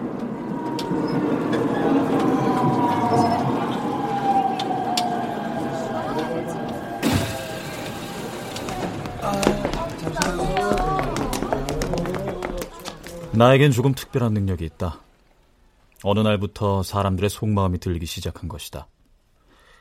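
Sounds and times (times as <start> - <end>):
murmuring voices: 0.0 - 13.6
subway train rumbling between stations: 0.0 - 13.8
subway train motor whine: 0.1 - 9.4
hissing burst: 6.6 - 9.8
speech: 13.4 - 15.0, 16.0 - 18.9.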